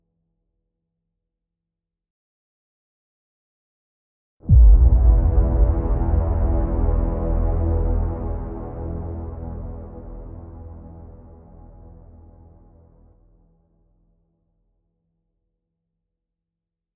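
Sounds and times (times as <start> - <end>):
action trailer music: 4.5 - 12.8.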